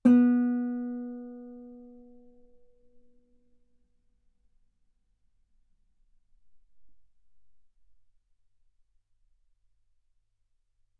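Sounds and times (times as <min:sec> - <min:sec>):
guitar note B3: 0:00.0 - 0:02.3.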